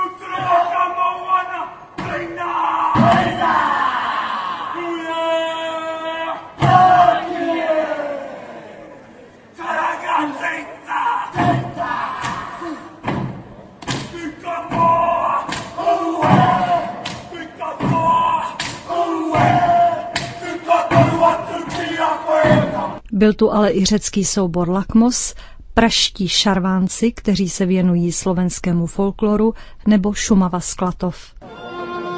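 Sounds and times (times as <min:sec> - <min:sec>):
group chanting and shouting in Maori war dance: 0:00.0 - 0:23.0
percussive slaps: 0:11.4 - 0:22.8
stamping feet: 0:13.0 - 0:22.9
speech: 0:23.2 - 0:31.4.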